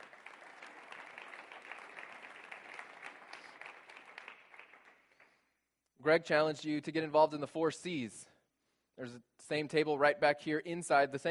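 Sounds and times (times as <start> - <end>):
audience applauding: 0.0 - 5.4
speech: 6.0 - 8.3, 9.0 - 11.2.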